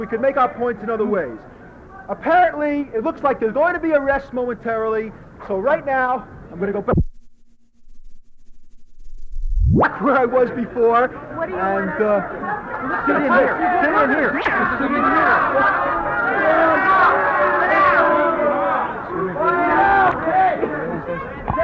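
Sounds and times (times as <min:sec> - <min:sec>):
speech: 0:00.0 - 0:07.0, 0:10.0 - 0:16.0
brief sharp sound: 0:06.9 - 0:09.9
crowd chatter at a protest: 0:11.2 - 0:21.6.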